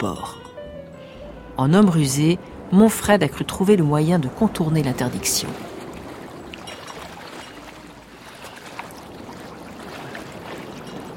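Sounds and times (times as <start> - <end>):
speech: 0.0 - 0.4, 1.6 - 5.7
water splashing as someone swims through cold currents: 4.7 - 11.1.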